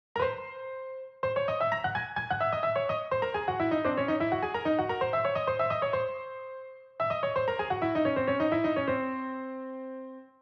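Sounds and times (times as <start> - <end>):
solo piano: 0.2 - 10.4.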